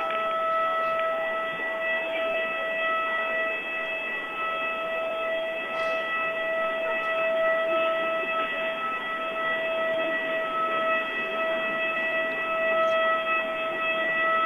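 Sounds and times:
gym lunk alarm siren blaring: 0:00.0 - 0:14.4.

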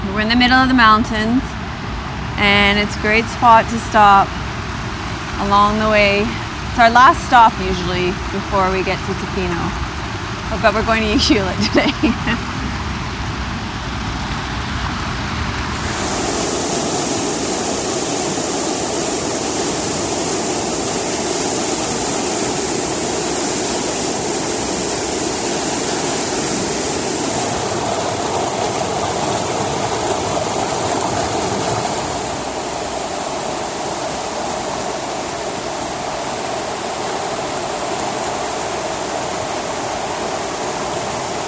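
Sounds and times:
river water flowing: 0:00.0 - 0:41.4
speech: 0:00.2 - 0:01.6, 0:02.4 - 0:04.4, 0:05.4 - 0:09.8, 0:10.5 - 0:12.5.

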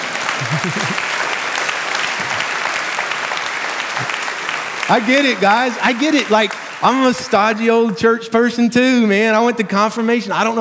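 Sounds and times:
laughter: 0:00.0 - 0:01.4
audience clapping: 0:00.0 - 0:09.1
speech: 0:00.4 - 0:01.4, 0:04.9 - 0:10.5.

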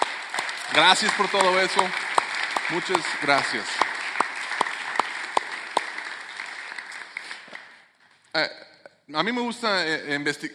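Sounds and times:
crowd applauding: 0:00.0 - 0:07.9
speech: 0:00.8 - 0:02.1, 0:02.7 - 0:03.8, 0:08.4 - 0:10.5.

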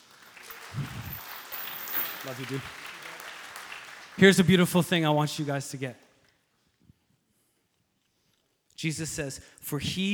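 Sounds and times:
audience applause: 0:00.0 - 0:06.0
speech: 0:02.2 - 0:02.8, 0:04.2 - 0:06.0, 0:08.8 - 0:10.1.

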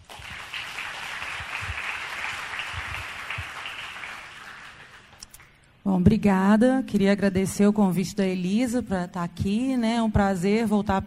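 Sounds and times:
audience applause: 0:00.0 - 0:05.2
speech: 0:05.9 - 0:11.0.

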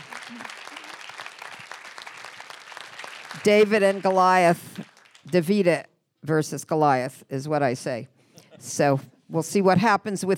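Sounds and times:
audience clapping: 0:00.0 - 0:05.8
speech: 0:03.4 - 0:10.3.

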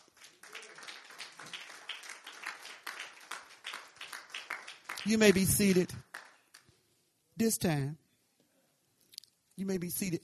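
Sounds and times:
audience clapping: 0:00.0 - 0:06.8
speech: 0:05.0 - 0:06.1, 0:07.4 - 0:08.0, 0:09.6 - 0:10.2.

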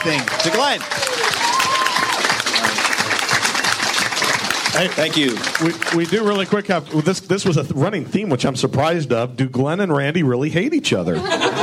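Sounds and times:
speech: 0:00.0 - 0:03.2, 0:04.7 - 0:11.6
round of applause: 0:00.0 - 0:07.3
laughter: 0:11.1 - 0:11.6.

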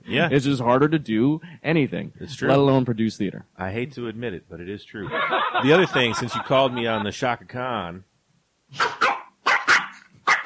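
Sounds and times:
speech: 0:00.1 - 0:08.1, 0:08.7 - 0:09.0
laughter: 0:05.0 - 0:07.3
dog barking: 0:08.8 - 0:10.4.

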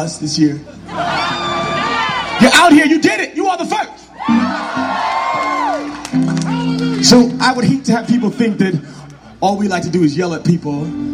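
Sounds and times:
speech: 0:00.0 - 0:01.2, 0:02.4 - 0:05.2, 0:07.0 - 0:11.1
concert crowd cheering and whooping: 0:00.9 - 0:02.7, 0:04.0 - 0:07.2.

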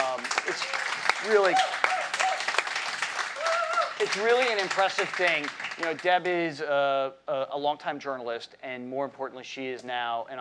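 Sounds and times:
audience applause: 0:00.0 - 0:06.3
speech: 0:00.5 - 0:01.8, 0:04.0 - 0:10.3.

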